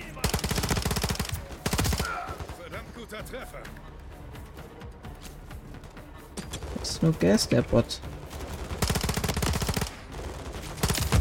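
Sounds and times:
automatic machine-gun bursts in the Modern Warfare 3 campaign: 0.2s - 2.1s, 8.5s - 11.1s
speech: 3.1s - 3.9s, 6.8s - 8.2s.

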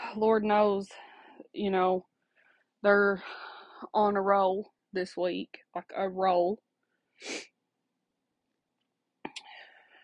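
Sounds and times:
speech: 0.1s - 2.1s, 2.8s - 7.5s
person sniffling: 7.2s - 7.5s.

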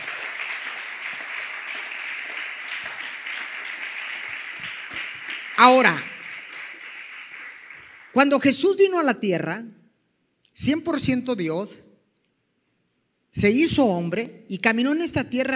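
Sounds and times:
audience applause: 0.0s - 8.4s
speech: 5.6s - 6.1s, 8.2s - 9.8s, 10.6s - 11.8s, 13.4s - 15.5s.

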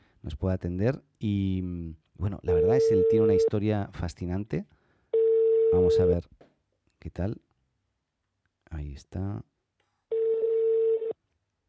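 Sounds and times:
speech: 0.2s - 4.8s, 5.7s - 6.4s, 7.0s - 7.5s, 8.7s - 9.5s
telephone ringback tone: 2.5s - 3.5s, 10.1s - 11.2s.

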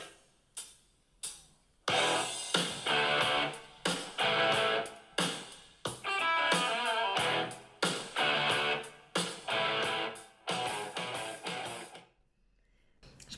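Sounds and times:
hard rock guitar chord stabs: 1.9s - 5.3s, 6.0s - 12.0s
full hard rock band playing: 1.9s - 12.0s.

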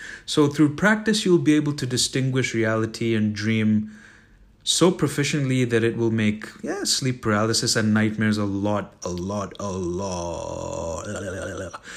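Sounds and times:
speech: 0.3s - 4.0s, 4.7s - 11.9s
long, low throaty burp: 9.5s - 11.9s.

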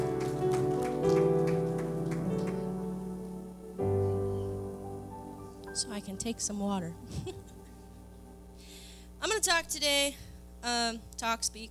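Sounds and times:
audience rhythmic hand clapping: 0.0s - 2.9s
sustained organ or keyboard chords: 0.0s - 9.6s
speech: 5.8s - 7.5s, 9.4s - 11.6s.

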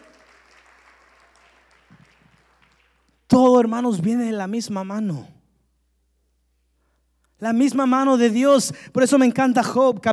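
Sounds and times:
crowd clapping: 0.0s - 3.4s
speech: 3.4s - 5.4s, 7.4s - 10.1s.

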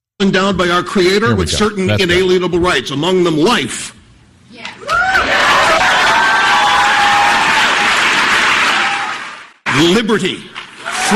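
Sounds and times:
speech: 0.2s - 5.0s, 9.8s - 11.1s
cheering and whoops: 4.8s - 9.5s, 10.8s - 11.1s
crowd applause: 5.1s - 9.6s.

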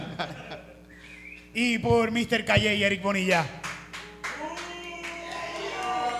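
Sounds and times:
laughter: 0.0s - 0.8s
speech: 0.2s - 0.6s, 1.5s - 3.6s
scattered handclaps: 3.6s - 6.1s
crowd booing: 5.0s - 6.1s.

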